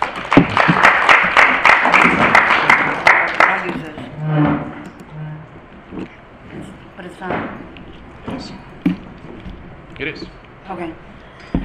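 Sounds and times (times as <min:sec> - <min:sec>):
audience clapping for a justice court judge at a judicial training class: 0:00.0 - 0:04.2.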